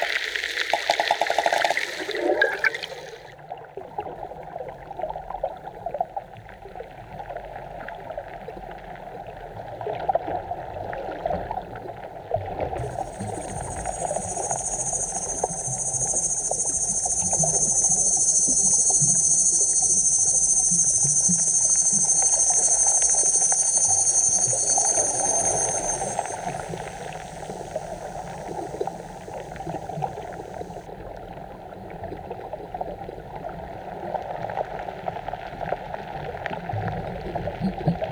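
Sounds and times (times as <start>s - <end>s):
cicadas: 0.0s - 3.3s, 12.8s - 30.9s
water: 0.0s - 38.0s.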